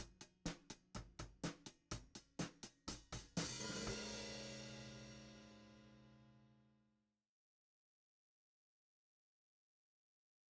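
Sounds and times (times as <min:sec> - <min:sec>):
hi-hat: 0:00.0 - 0:04.8.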